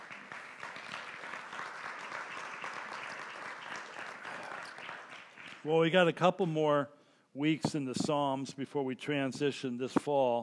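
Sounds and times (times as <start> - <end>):
audience applause: 0.0 - 5.7
speech: 5.6 - 10.4.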